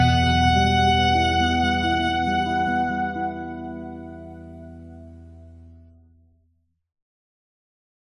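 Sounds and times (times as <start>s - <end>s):
saxophone: 0.0s - 5.3s.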